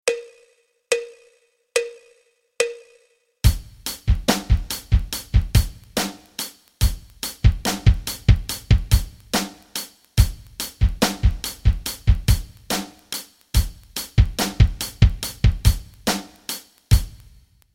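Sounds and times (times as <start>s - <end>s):
rock rhythms: 3.4s - 17.5s.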